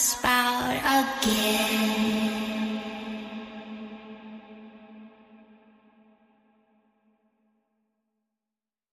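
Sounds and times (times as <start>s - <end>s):
horror nursery rhyme: 0.0s - 5.2s.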